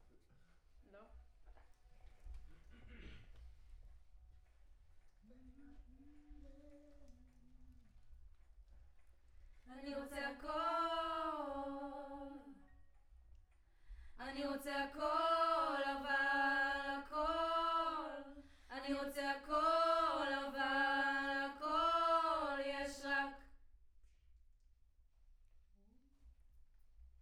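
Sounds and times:
choir singing: 9.7s - 12.8s, 14.2s - 23.5s.

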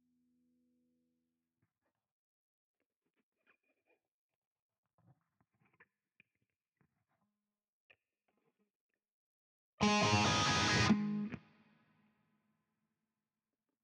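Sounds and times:
guitar: 9.8s - 11.7s.

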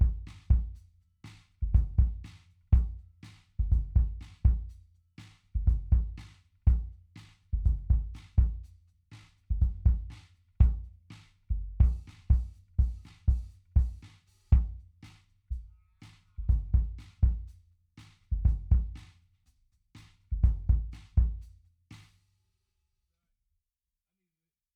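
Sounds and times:
kick drum: 0.0s - 15.7s, 16.4s - 19.1s, 20.3s - 21.5s.

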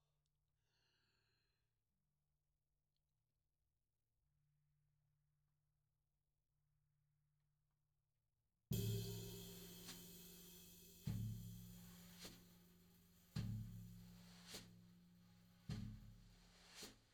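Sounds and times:
tom drum: 8.7s - 16.8s.

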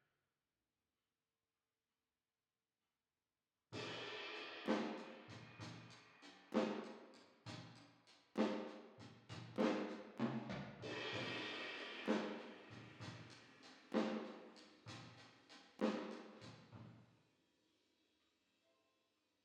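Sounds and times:
drums with reverb: 3.8s - 17.0s.

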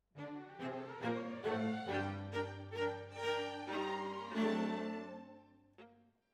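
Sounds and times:
violas: 0.2s - 6.0s.

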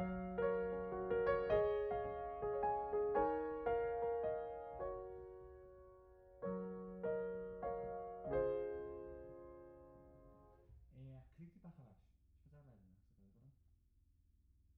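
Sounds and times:
piano: 0.0s - 10.7s.

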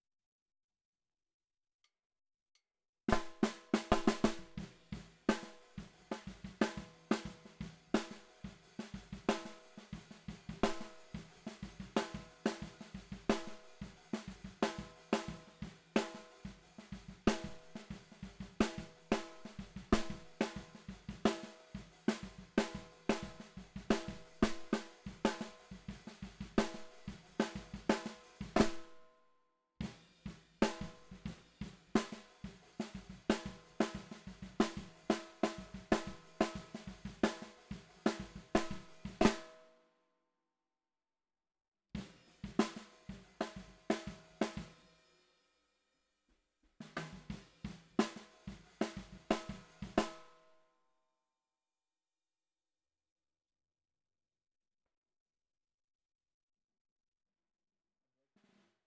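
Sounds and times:
bottom snare drum: 3.1s - 29.1s, 29.8s - 39.6s, 42.0s - 44.9s, 46.8s - 50.4s.

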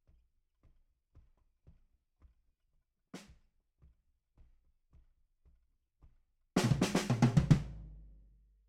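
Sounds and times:
bass drum: 6.6s - 8.1s.

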